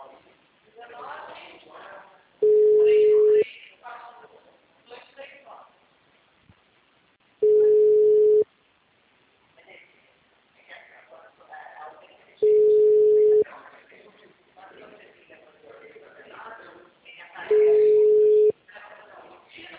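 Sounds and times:
telephone call tones: 2.4 - 3.4, 7.4 - 8.4, 12.4 - 13.4, 17.5 - 18.5.

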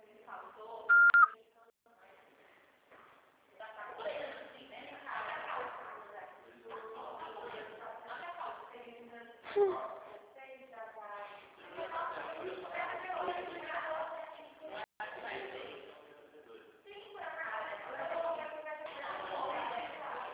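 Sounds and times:
people talking: 0.0 - 2.5, 3.6 - 20.3
low noise: 0.0 - 20.3
answering machine beep: 0.9 - 1.4.

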